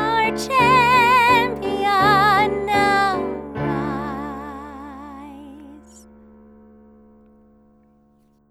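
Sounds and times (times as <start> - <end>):
theme song with English vocals: 0.0 - 6.0.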